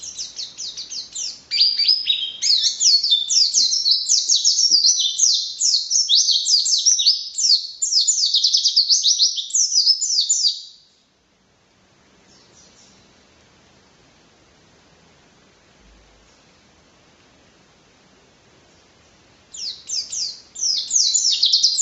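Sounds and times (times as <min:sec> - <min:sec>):
white-eye singing: 0:00.0 - 0:10.9, 0:19.5 - 0:21.7.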